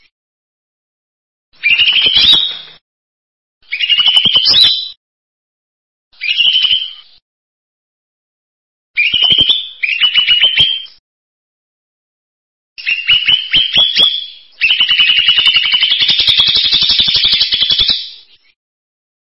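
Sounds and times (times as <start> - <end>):
bird song in buzzy trilled phrases: 1.6 - 2.8, 3.6 - 5.0, 6.2 - 7.2, 9.0 - 11.0, 12.8 - 18.6.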